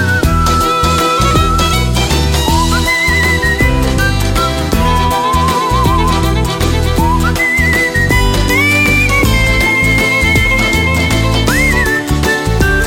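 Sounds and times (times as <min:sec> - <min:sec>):
whistled waltz: 0:00.0 - 0:12.8.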